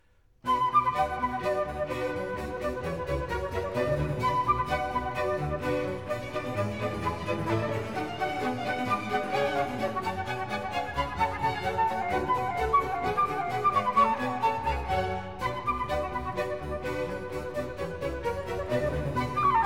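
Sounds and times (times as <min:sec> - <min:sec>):
orchestral suite in B minor: 0:00.4 - 0:19.6.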